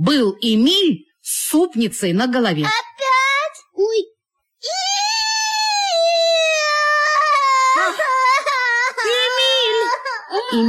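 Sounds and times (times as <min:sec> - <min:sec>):
speech: 0:00.0 - 0:02.9
young girl crying loudly: 0:04.6 - 0:10.6.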